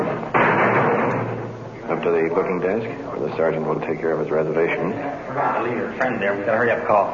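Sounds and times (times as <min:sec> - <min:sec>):
heavy iron door clanking and slamming shut: 0:00.2 - 0:01.7
speech: 0:02.0 - 0:07.1.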